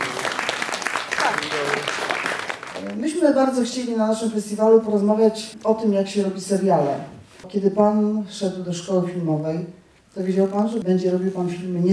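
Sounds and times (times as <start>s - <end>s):
audience applause: 0.0s - 3.0s
speech: 2.8s - 11.9s.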